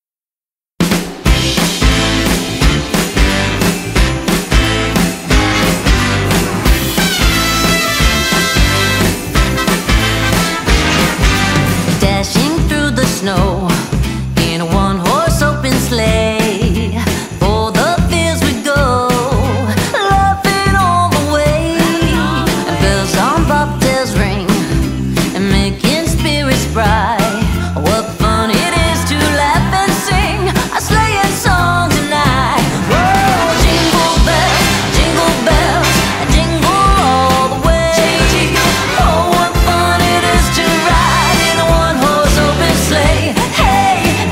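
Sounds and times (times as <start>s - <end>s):
Christmas song: 1.3s - 44.3s.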